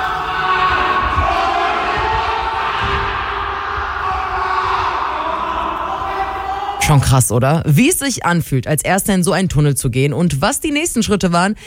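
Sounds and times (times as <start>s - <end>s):
extras screaming in a tunnel rescue drill: 0.0s - 7.1s
dull low thumps and rumbling: 0.6s - 5.1s
speech: 6.9s - 11.6s.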